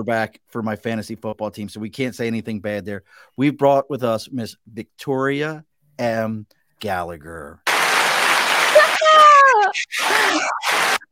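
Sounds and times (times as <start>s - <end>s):
speech: 0.0s - 7.6s
applause sound effect: 7.7s - 11.1s.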